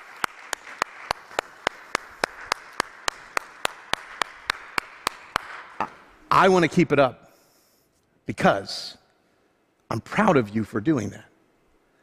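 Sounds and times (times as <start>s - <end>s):
audience applauding: 0.0s - 6.0s
speech: 6.4s - 7.2s, 8.3s - 9.0s, 9.9s - 11.3s.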